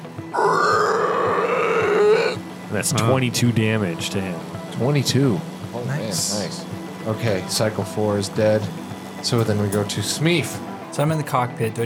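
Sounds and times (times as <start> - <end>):
person imitating a muffled scream: 0.4 - 2.4
speech: 2.8 - 11.8.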